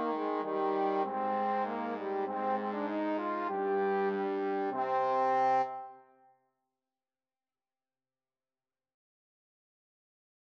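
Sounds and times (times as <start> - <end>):
trombone trio playing a carol: 0.0 - 5.8.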